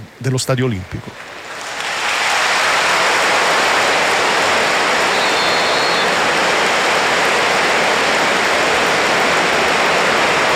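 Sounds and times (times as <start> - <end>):
speech: 0.2 - 1.4
stadium crowd applause: 1.2 - 10.5
referee whistle: 5.0 - 6.3.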